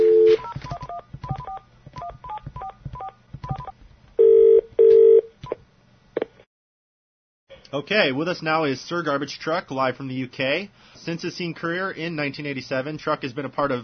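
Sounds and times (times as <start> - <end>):
telephone touch-tone dialing beeps placing a call: 0.0 - 5.2
speech: 7.7 - 13.8.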